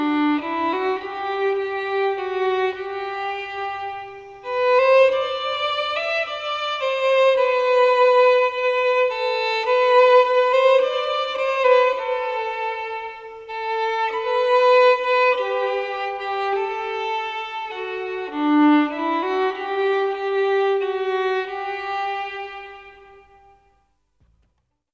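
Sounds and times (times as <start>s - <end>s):
violin: 0.0s - 24.6s.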